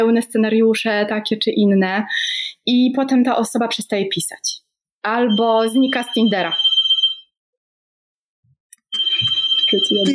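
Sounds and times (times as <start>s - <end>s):
speech: 0.0s - 6.7s, 9.7s - 10.1s
phone electronic ringing alert: 5.3s - 7.3s, 8.9s - 10.1s.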